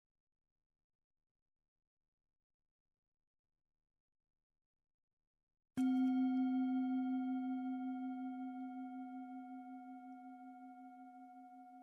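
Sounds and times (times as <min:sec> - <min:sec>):
meditation bell ringing: 0:05.8 - 0:11.8.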